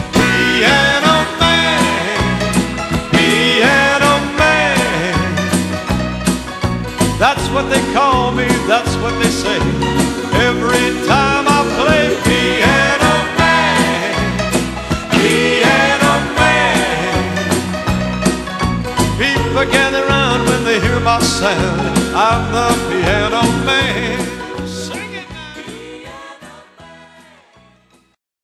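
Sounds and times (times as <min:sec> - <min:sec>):
piano: 0:00.0 - 0:28.0.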